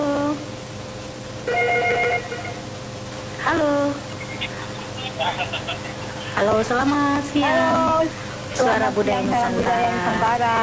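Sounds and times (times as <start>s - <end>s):
telephone ringing: 1.5s - 2.6s
hiss: 1.5s - 10.6s
laughter: 4.1s - 6.6s
speech: 5.2s - 10.6s.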